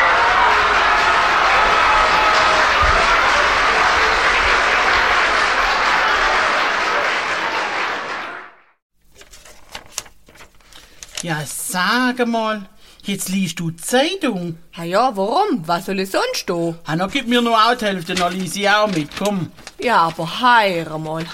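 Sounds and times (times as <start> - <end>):
canned applause from a sound button: 0.0 - 8.8
speech: 11.3 - 21.3.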